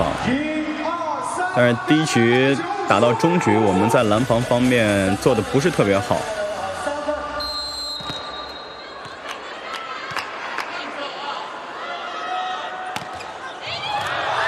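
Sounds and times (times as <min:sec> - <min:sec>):
loud crowd noise: 0:00.0 - 0:14.4
speech: 0:00.2 - 0:00.5, 0:01.6 - 0:06.4
volleyball strikes including an ace serve in a women's match: 0:12.9 - 0:14.2.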